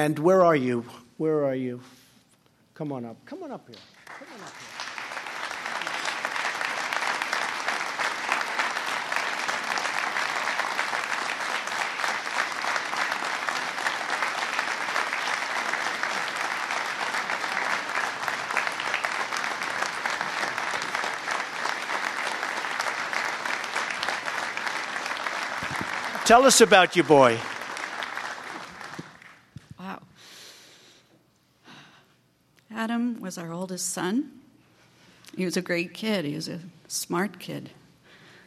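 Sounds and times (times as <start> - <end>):
speech: 0.0 - 2.0, 2.8 - 4.7, 26.3 - 27.5, 33.3 - 34.4, 35.4 - 37.8
audience applause: 4.0 - 29.5.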